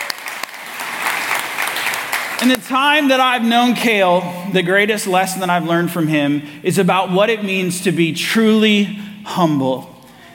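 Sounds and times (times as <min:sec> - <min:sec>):
audience applause: 0:00.0 - 0:02.6
speech: 0:02.4 - 0:09.9.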